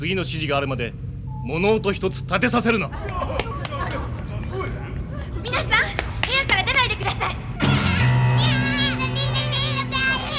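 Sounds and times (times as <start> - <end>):
speech: 0.0 - 3.4, 5.4 - 6.0
low sustained tones: 0.0 - 6.0, 6.8 - 10.3
laughter: 0.0 - 10.3
young child crying in an animated sci-fi war scene: 5.2 - 10.3.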